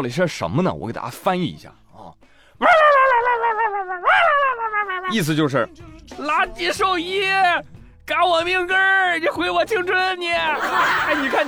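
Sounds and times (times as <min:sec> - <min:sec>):
speech: 0:00.0 - 0:01.8, 0:02.6 - 0:03.2, 0:05.1 - 0:11.4
agitated dog crying and yelping at vet: 0:02.6 - 0:05.1
laughter: 0:10.4 - 0:11.4.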